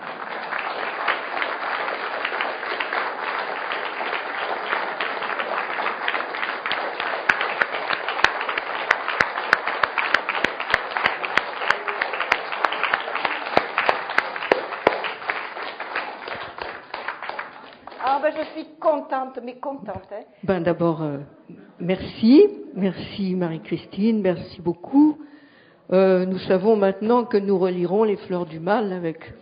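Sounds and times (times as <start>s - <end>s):
audience applause: 0.0s - 18.4s
speech: 19.1s - 25.1s, 25.9s - 29.4s.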